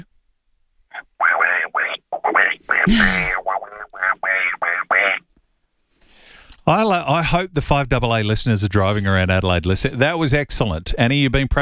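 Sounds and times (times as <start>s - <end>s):
person imitating Donald Duck quacking: 0.9s - 5.2s
speech: 2.8s - 3.4s, 6.7s - 11.6s.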